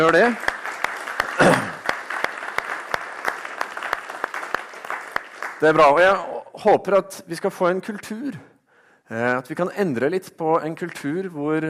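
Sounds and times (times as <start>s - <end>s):
speech: 0.0s - 0.5s, 5.6s - 8.5s, 9.1s - 11.6s
audience clapping: 0.0s - 6.8s.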